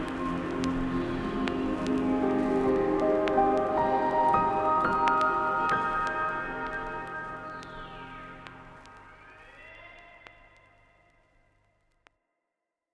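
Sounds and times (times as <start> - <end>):
ambient music: 0.0 - 9.8.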